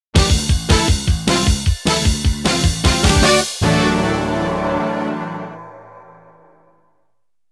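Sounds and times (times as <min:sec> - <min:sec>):
victory jingle: 0:00.8 - 0:06.4.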